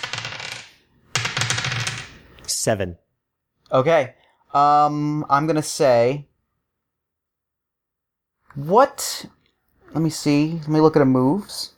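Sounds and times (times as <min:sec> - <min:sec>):
dice clattering: 0:00.0 - 0:02.2
speech: 0:02.6 - 0:03.0, 0:03.7 - 0:06.3, 0:08.5 - 0:11.7.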